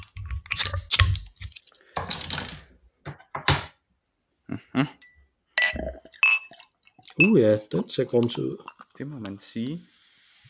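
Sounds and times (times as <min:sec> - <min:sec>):
beer bottle opening: 0:00.5 - 0:01.4
speech: 0:07.2 - 0:09.9.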